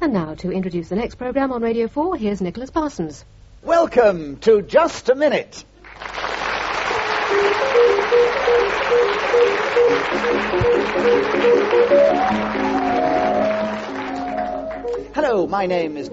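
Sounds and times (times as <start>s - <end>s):
speech: 0.0s - 6.3s, 7.4s - 12.8s, 14.9s - 16.1s
continuous audience applause: 5.8s - 15.0s
classical waltz as a theme tune: 7.1s - 15.1s.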